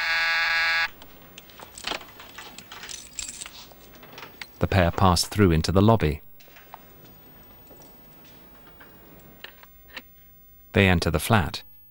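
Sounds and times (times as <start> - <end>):
electric doorbell buzzing: 0.0 - 1.0
keys jingling: 1.0 - 4.6, 6.4 - 9.8
speech: 4.6 - 6.2, 10.8 - 11.7.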